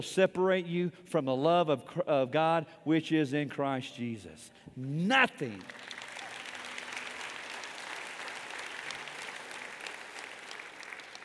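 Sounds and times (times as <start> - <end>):
speech: 0.0 - 6.0
audience applause: 5.4 - 11.2.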